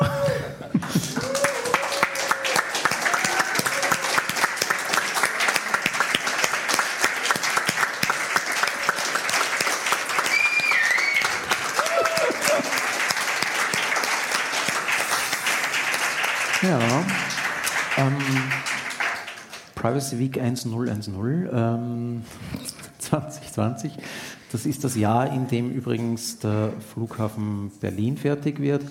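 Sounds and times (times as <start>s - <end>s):
laughter: 0.0s - 1.6s, 11.8s - 13.0s
audience applause: 0.8s - 19.8s
speech: 20.0s - 28.8s.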